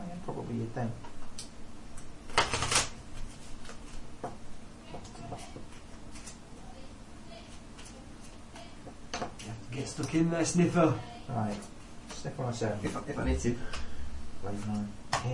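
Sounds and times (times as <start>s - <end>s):
speech: 0.6s - 1.1s, 10.0s - 13.8s, 14.4s - 15.3s
shuffling a deck of playing cards at a tabletop game session: 2.3s - 4.0s.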